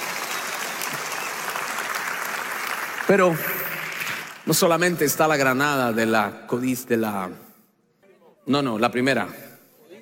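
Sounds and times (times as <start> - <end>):
audience clapping: 0.0 - 4.9
speech: 3.1 - 3.6, 4.5 - 7.4, 8.5 - 9.4.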